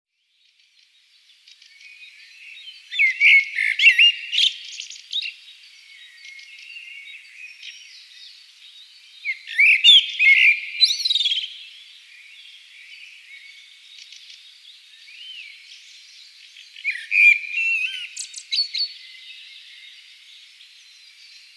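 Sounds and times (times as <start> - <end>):
common blackbird singing: 0.2 - 21.5.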